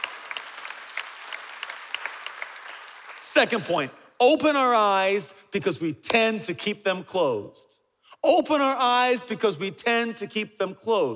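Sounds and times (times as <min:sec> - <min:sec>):
audience clapping: 0:00.0 - 0:03.9
speech: 0:03.3 - 0:11.1.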